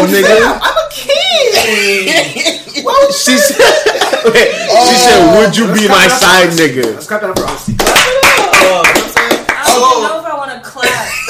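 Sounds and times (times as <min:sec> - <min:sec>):
speech: 0:00.1 - 0:00.8, 0:01.7 - 0:08.0
laughter: 0:01.6 - 0:06.6
audience clapping: 0:05.9 - 0:10.0.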